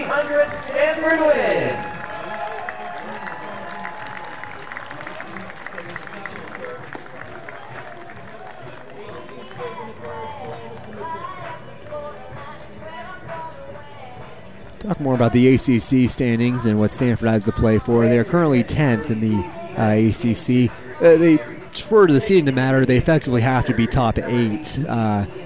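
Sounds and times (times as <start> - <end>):
round of applause: 0.0 - 11.6
speech: 0.1 - 1.9, 15.0 - 25.4.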